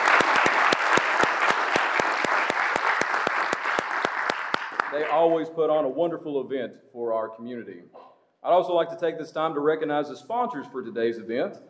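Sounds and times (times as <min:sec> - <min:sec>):
audience applause: 0:00.0 - 0:05.2
speech: 0:05.1 - 0:11.6.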